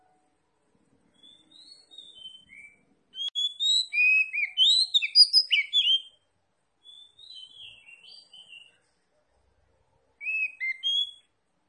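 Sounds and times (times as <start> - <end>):
Oriental magpie-robin singing: 1.1 - 8.9, 10.2 - 11.3.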